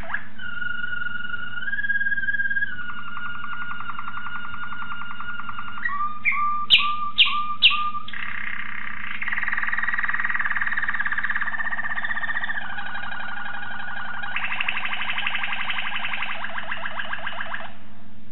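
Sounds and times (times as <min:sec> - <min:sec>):
Waterslager canary singing: 0:00.0 - 0:17.8.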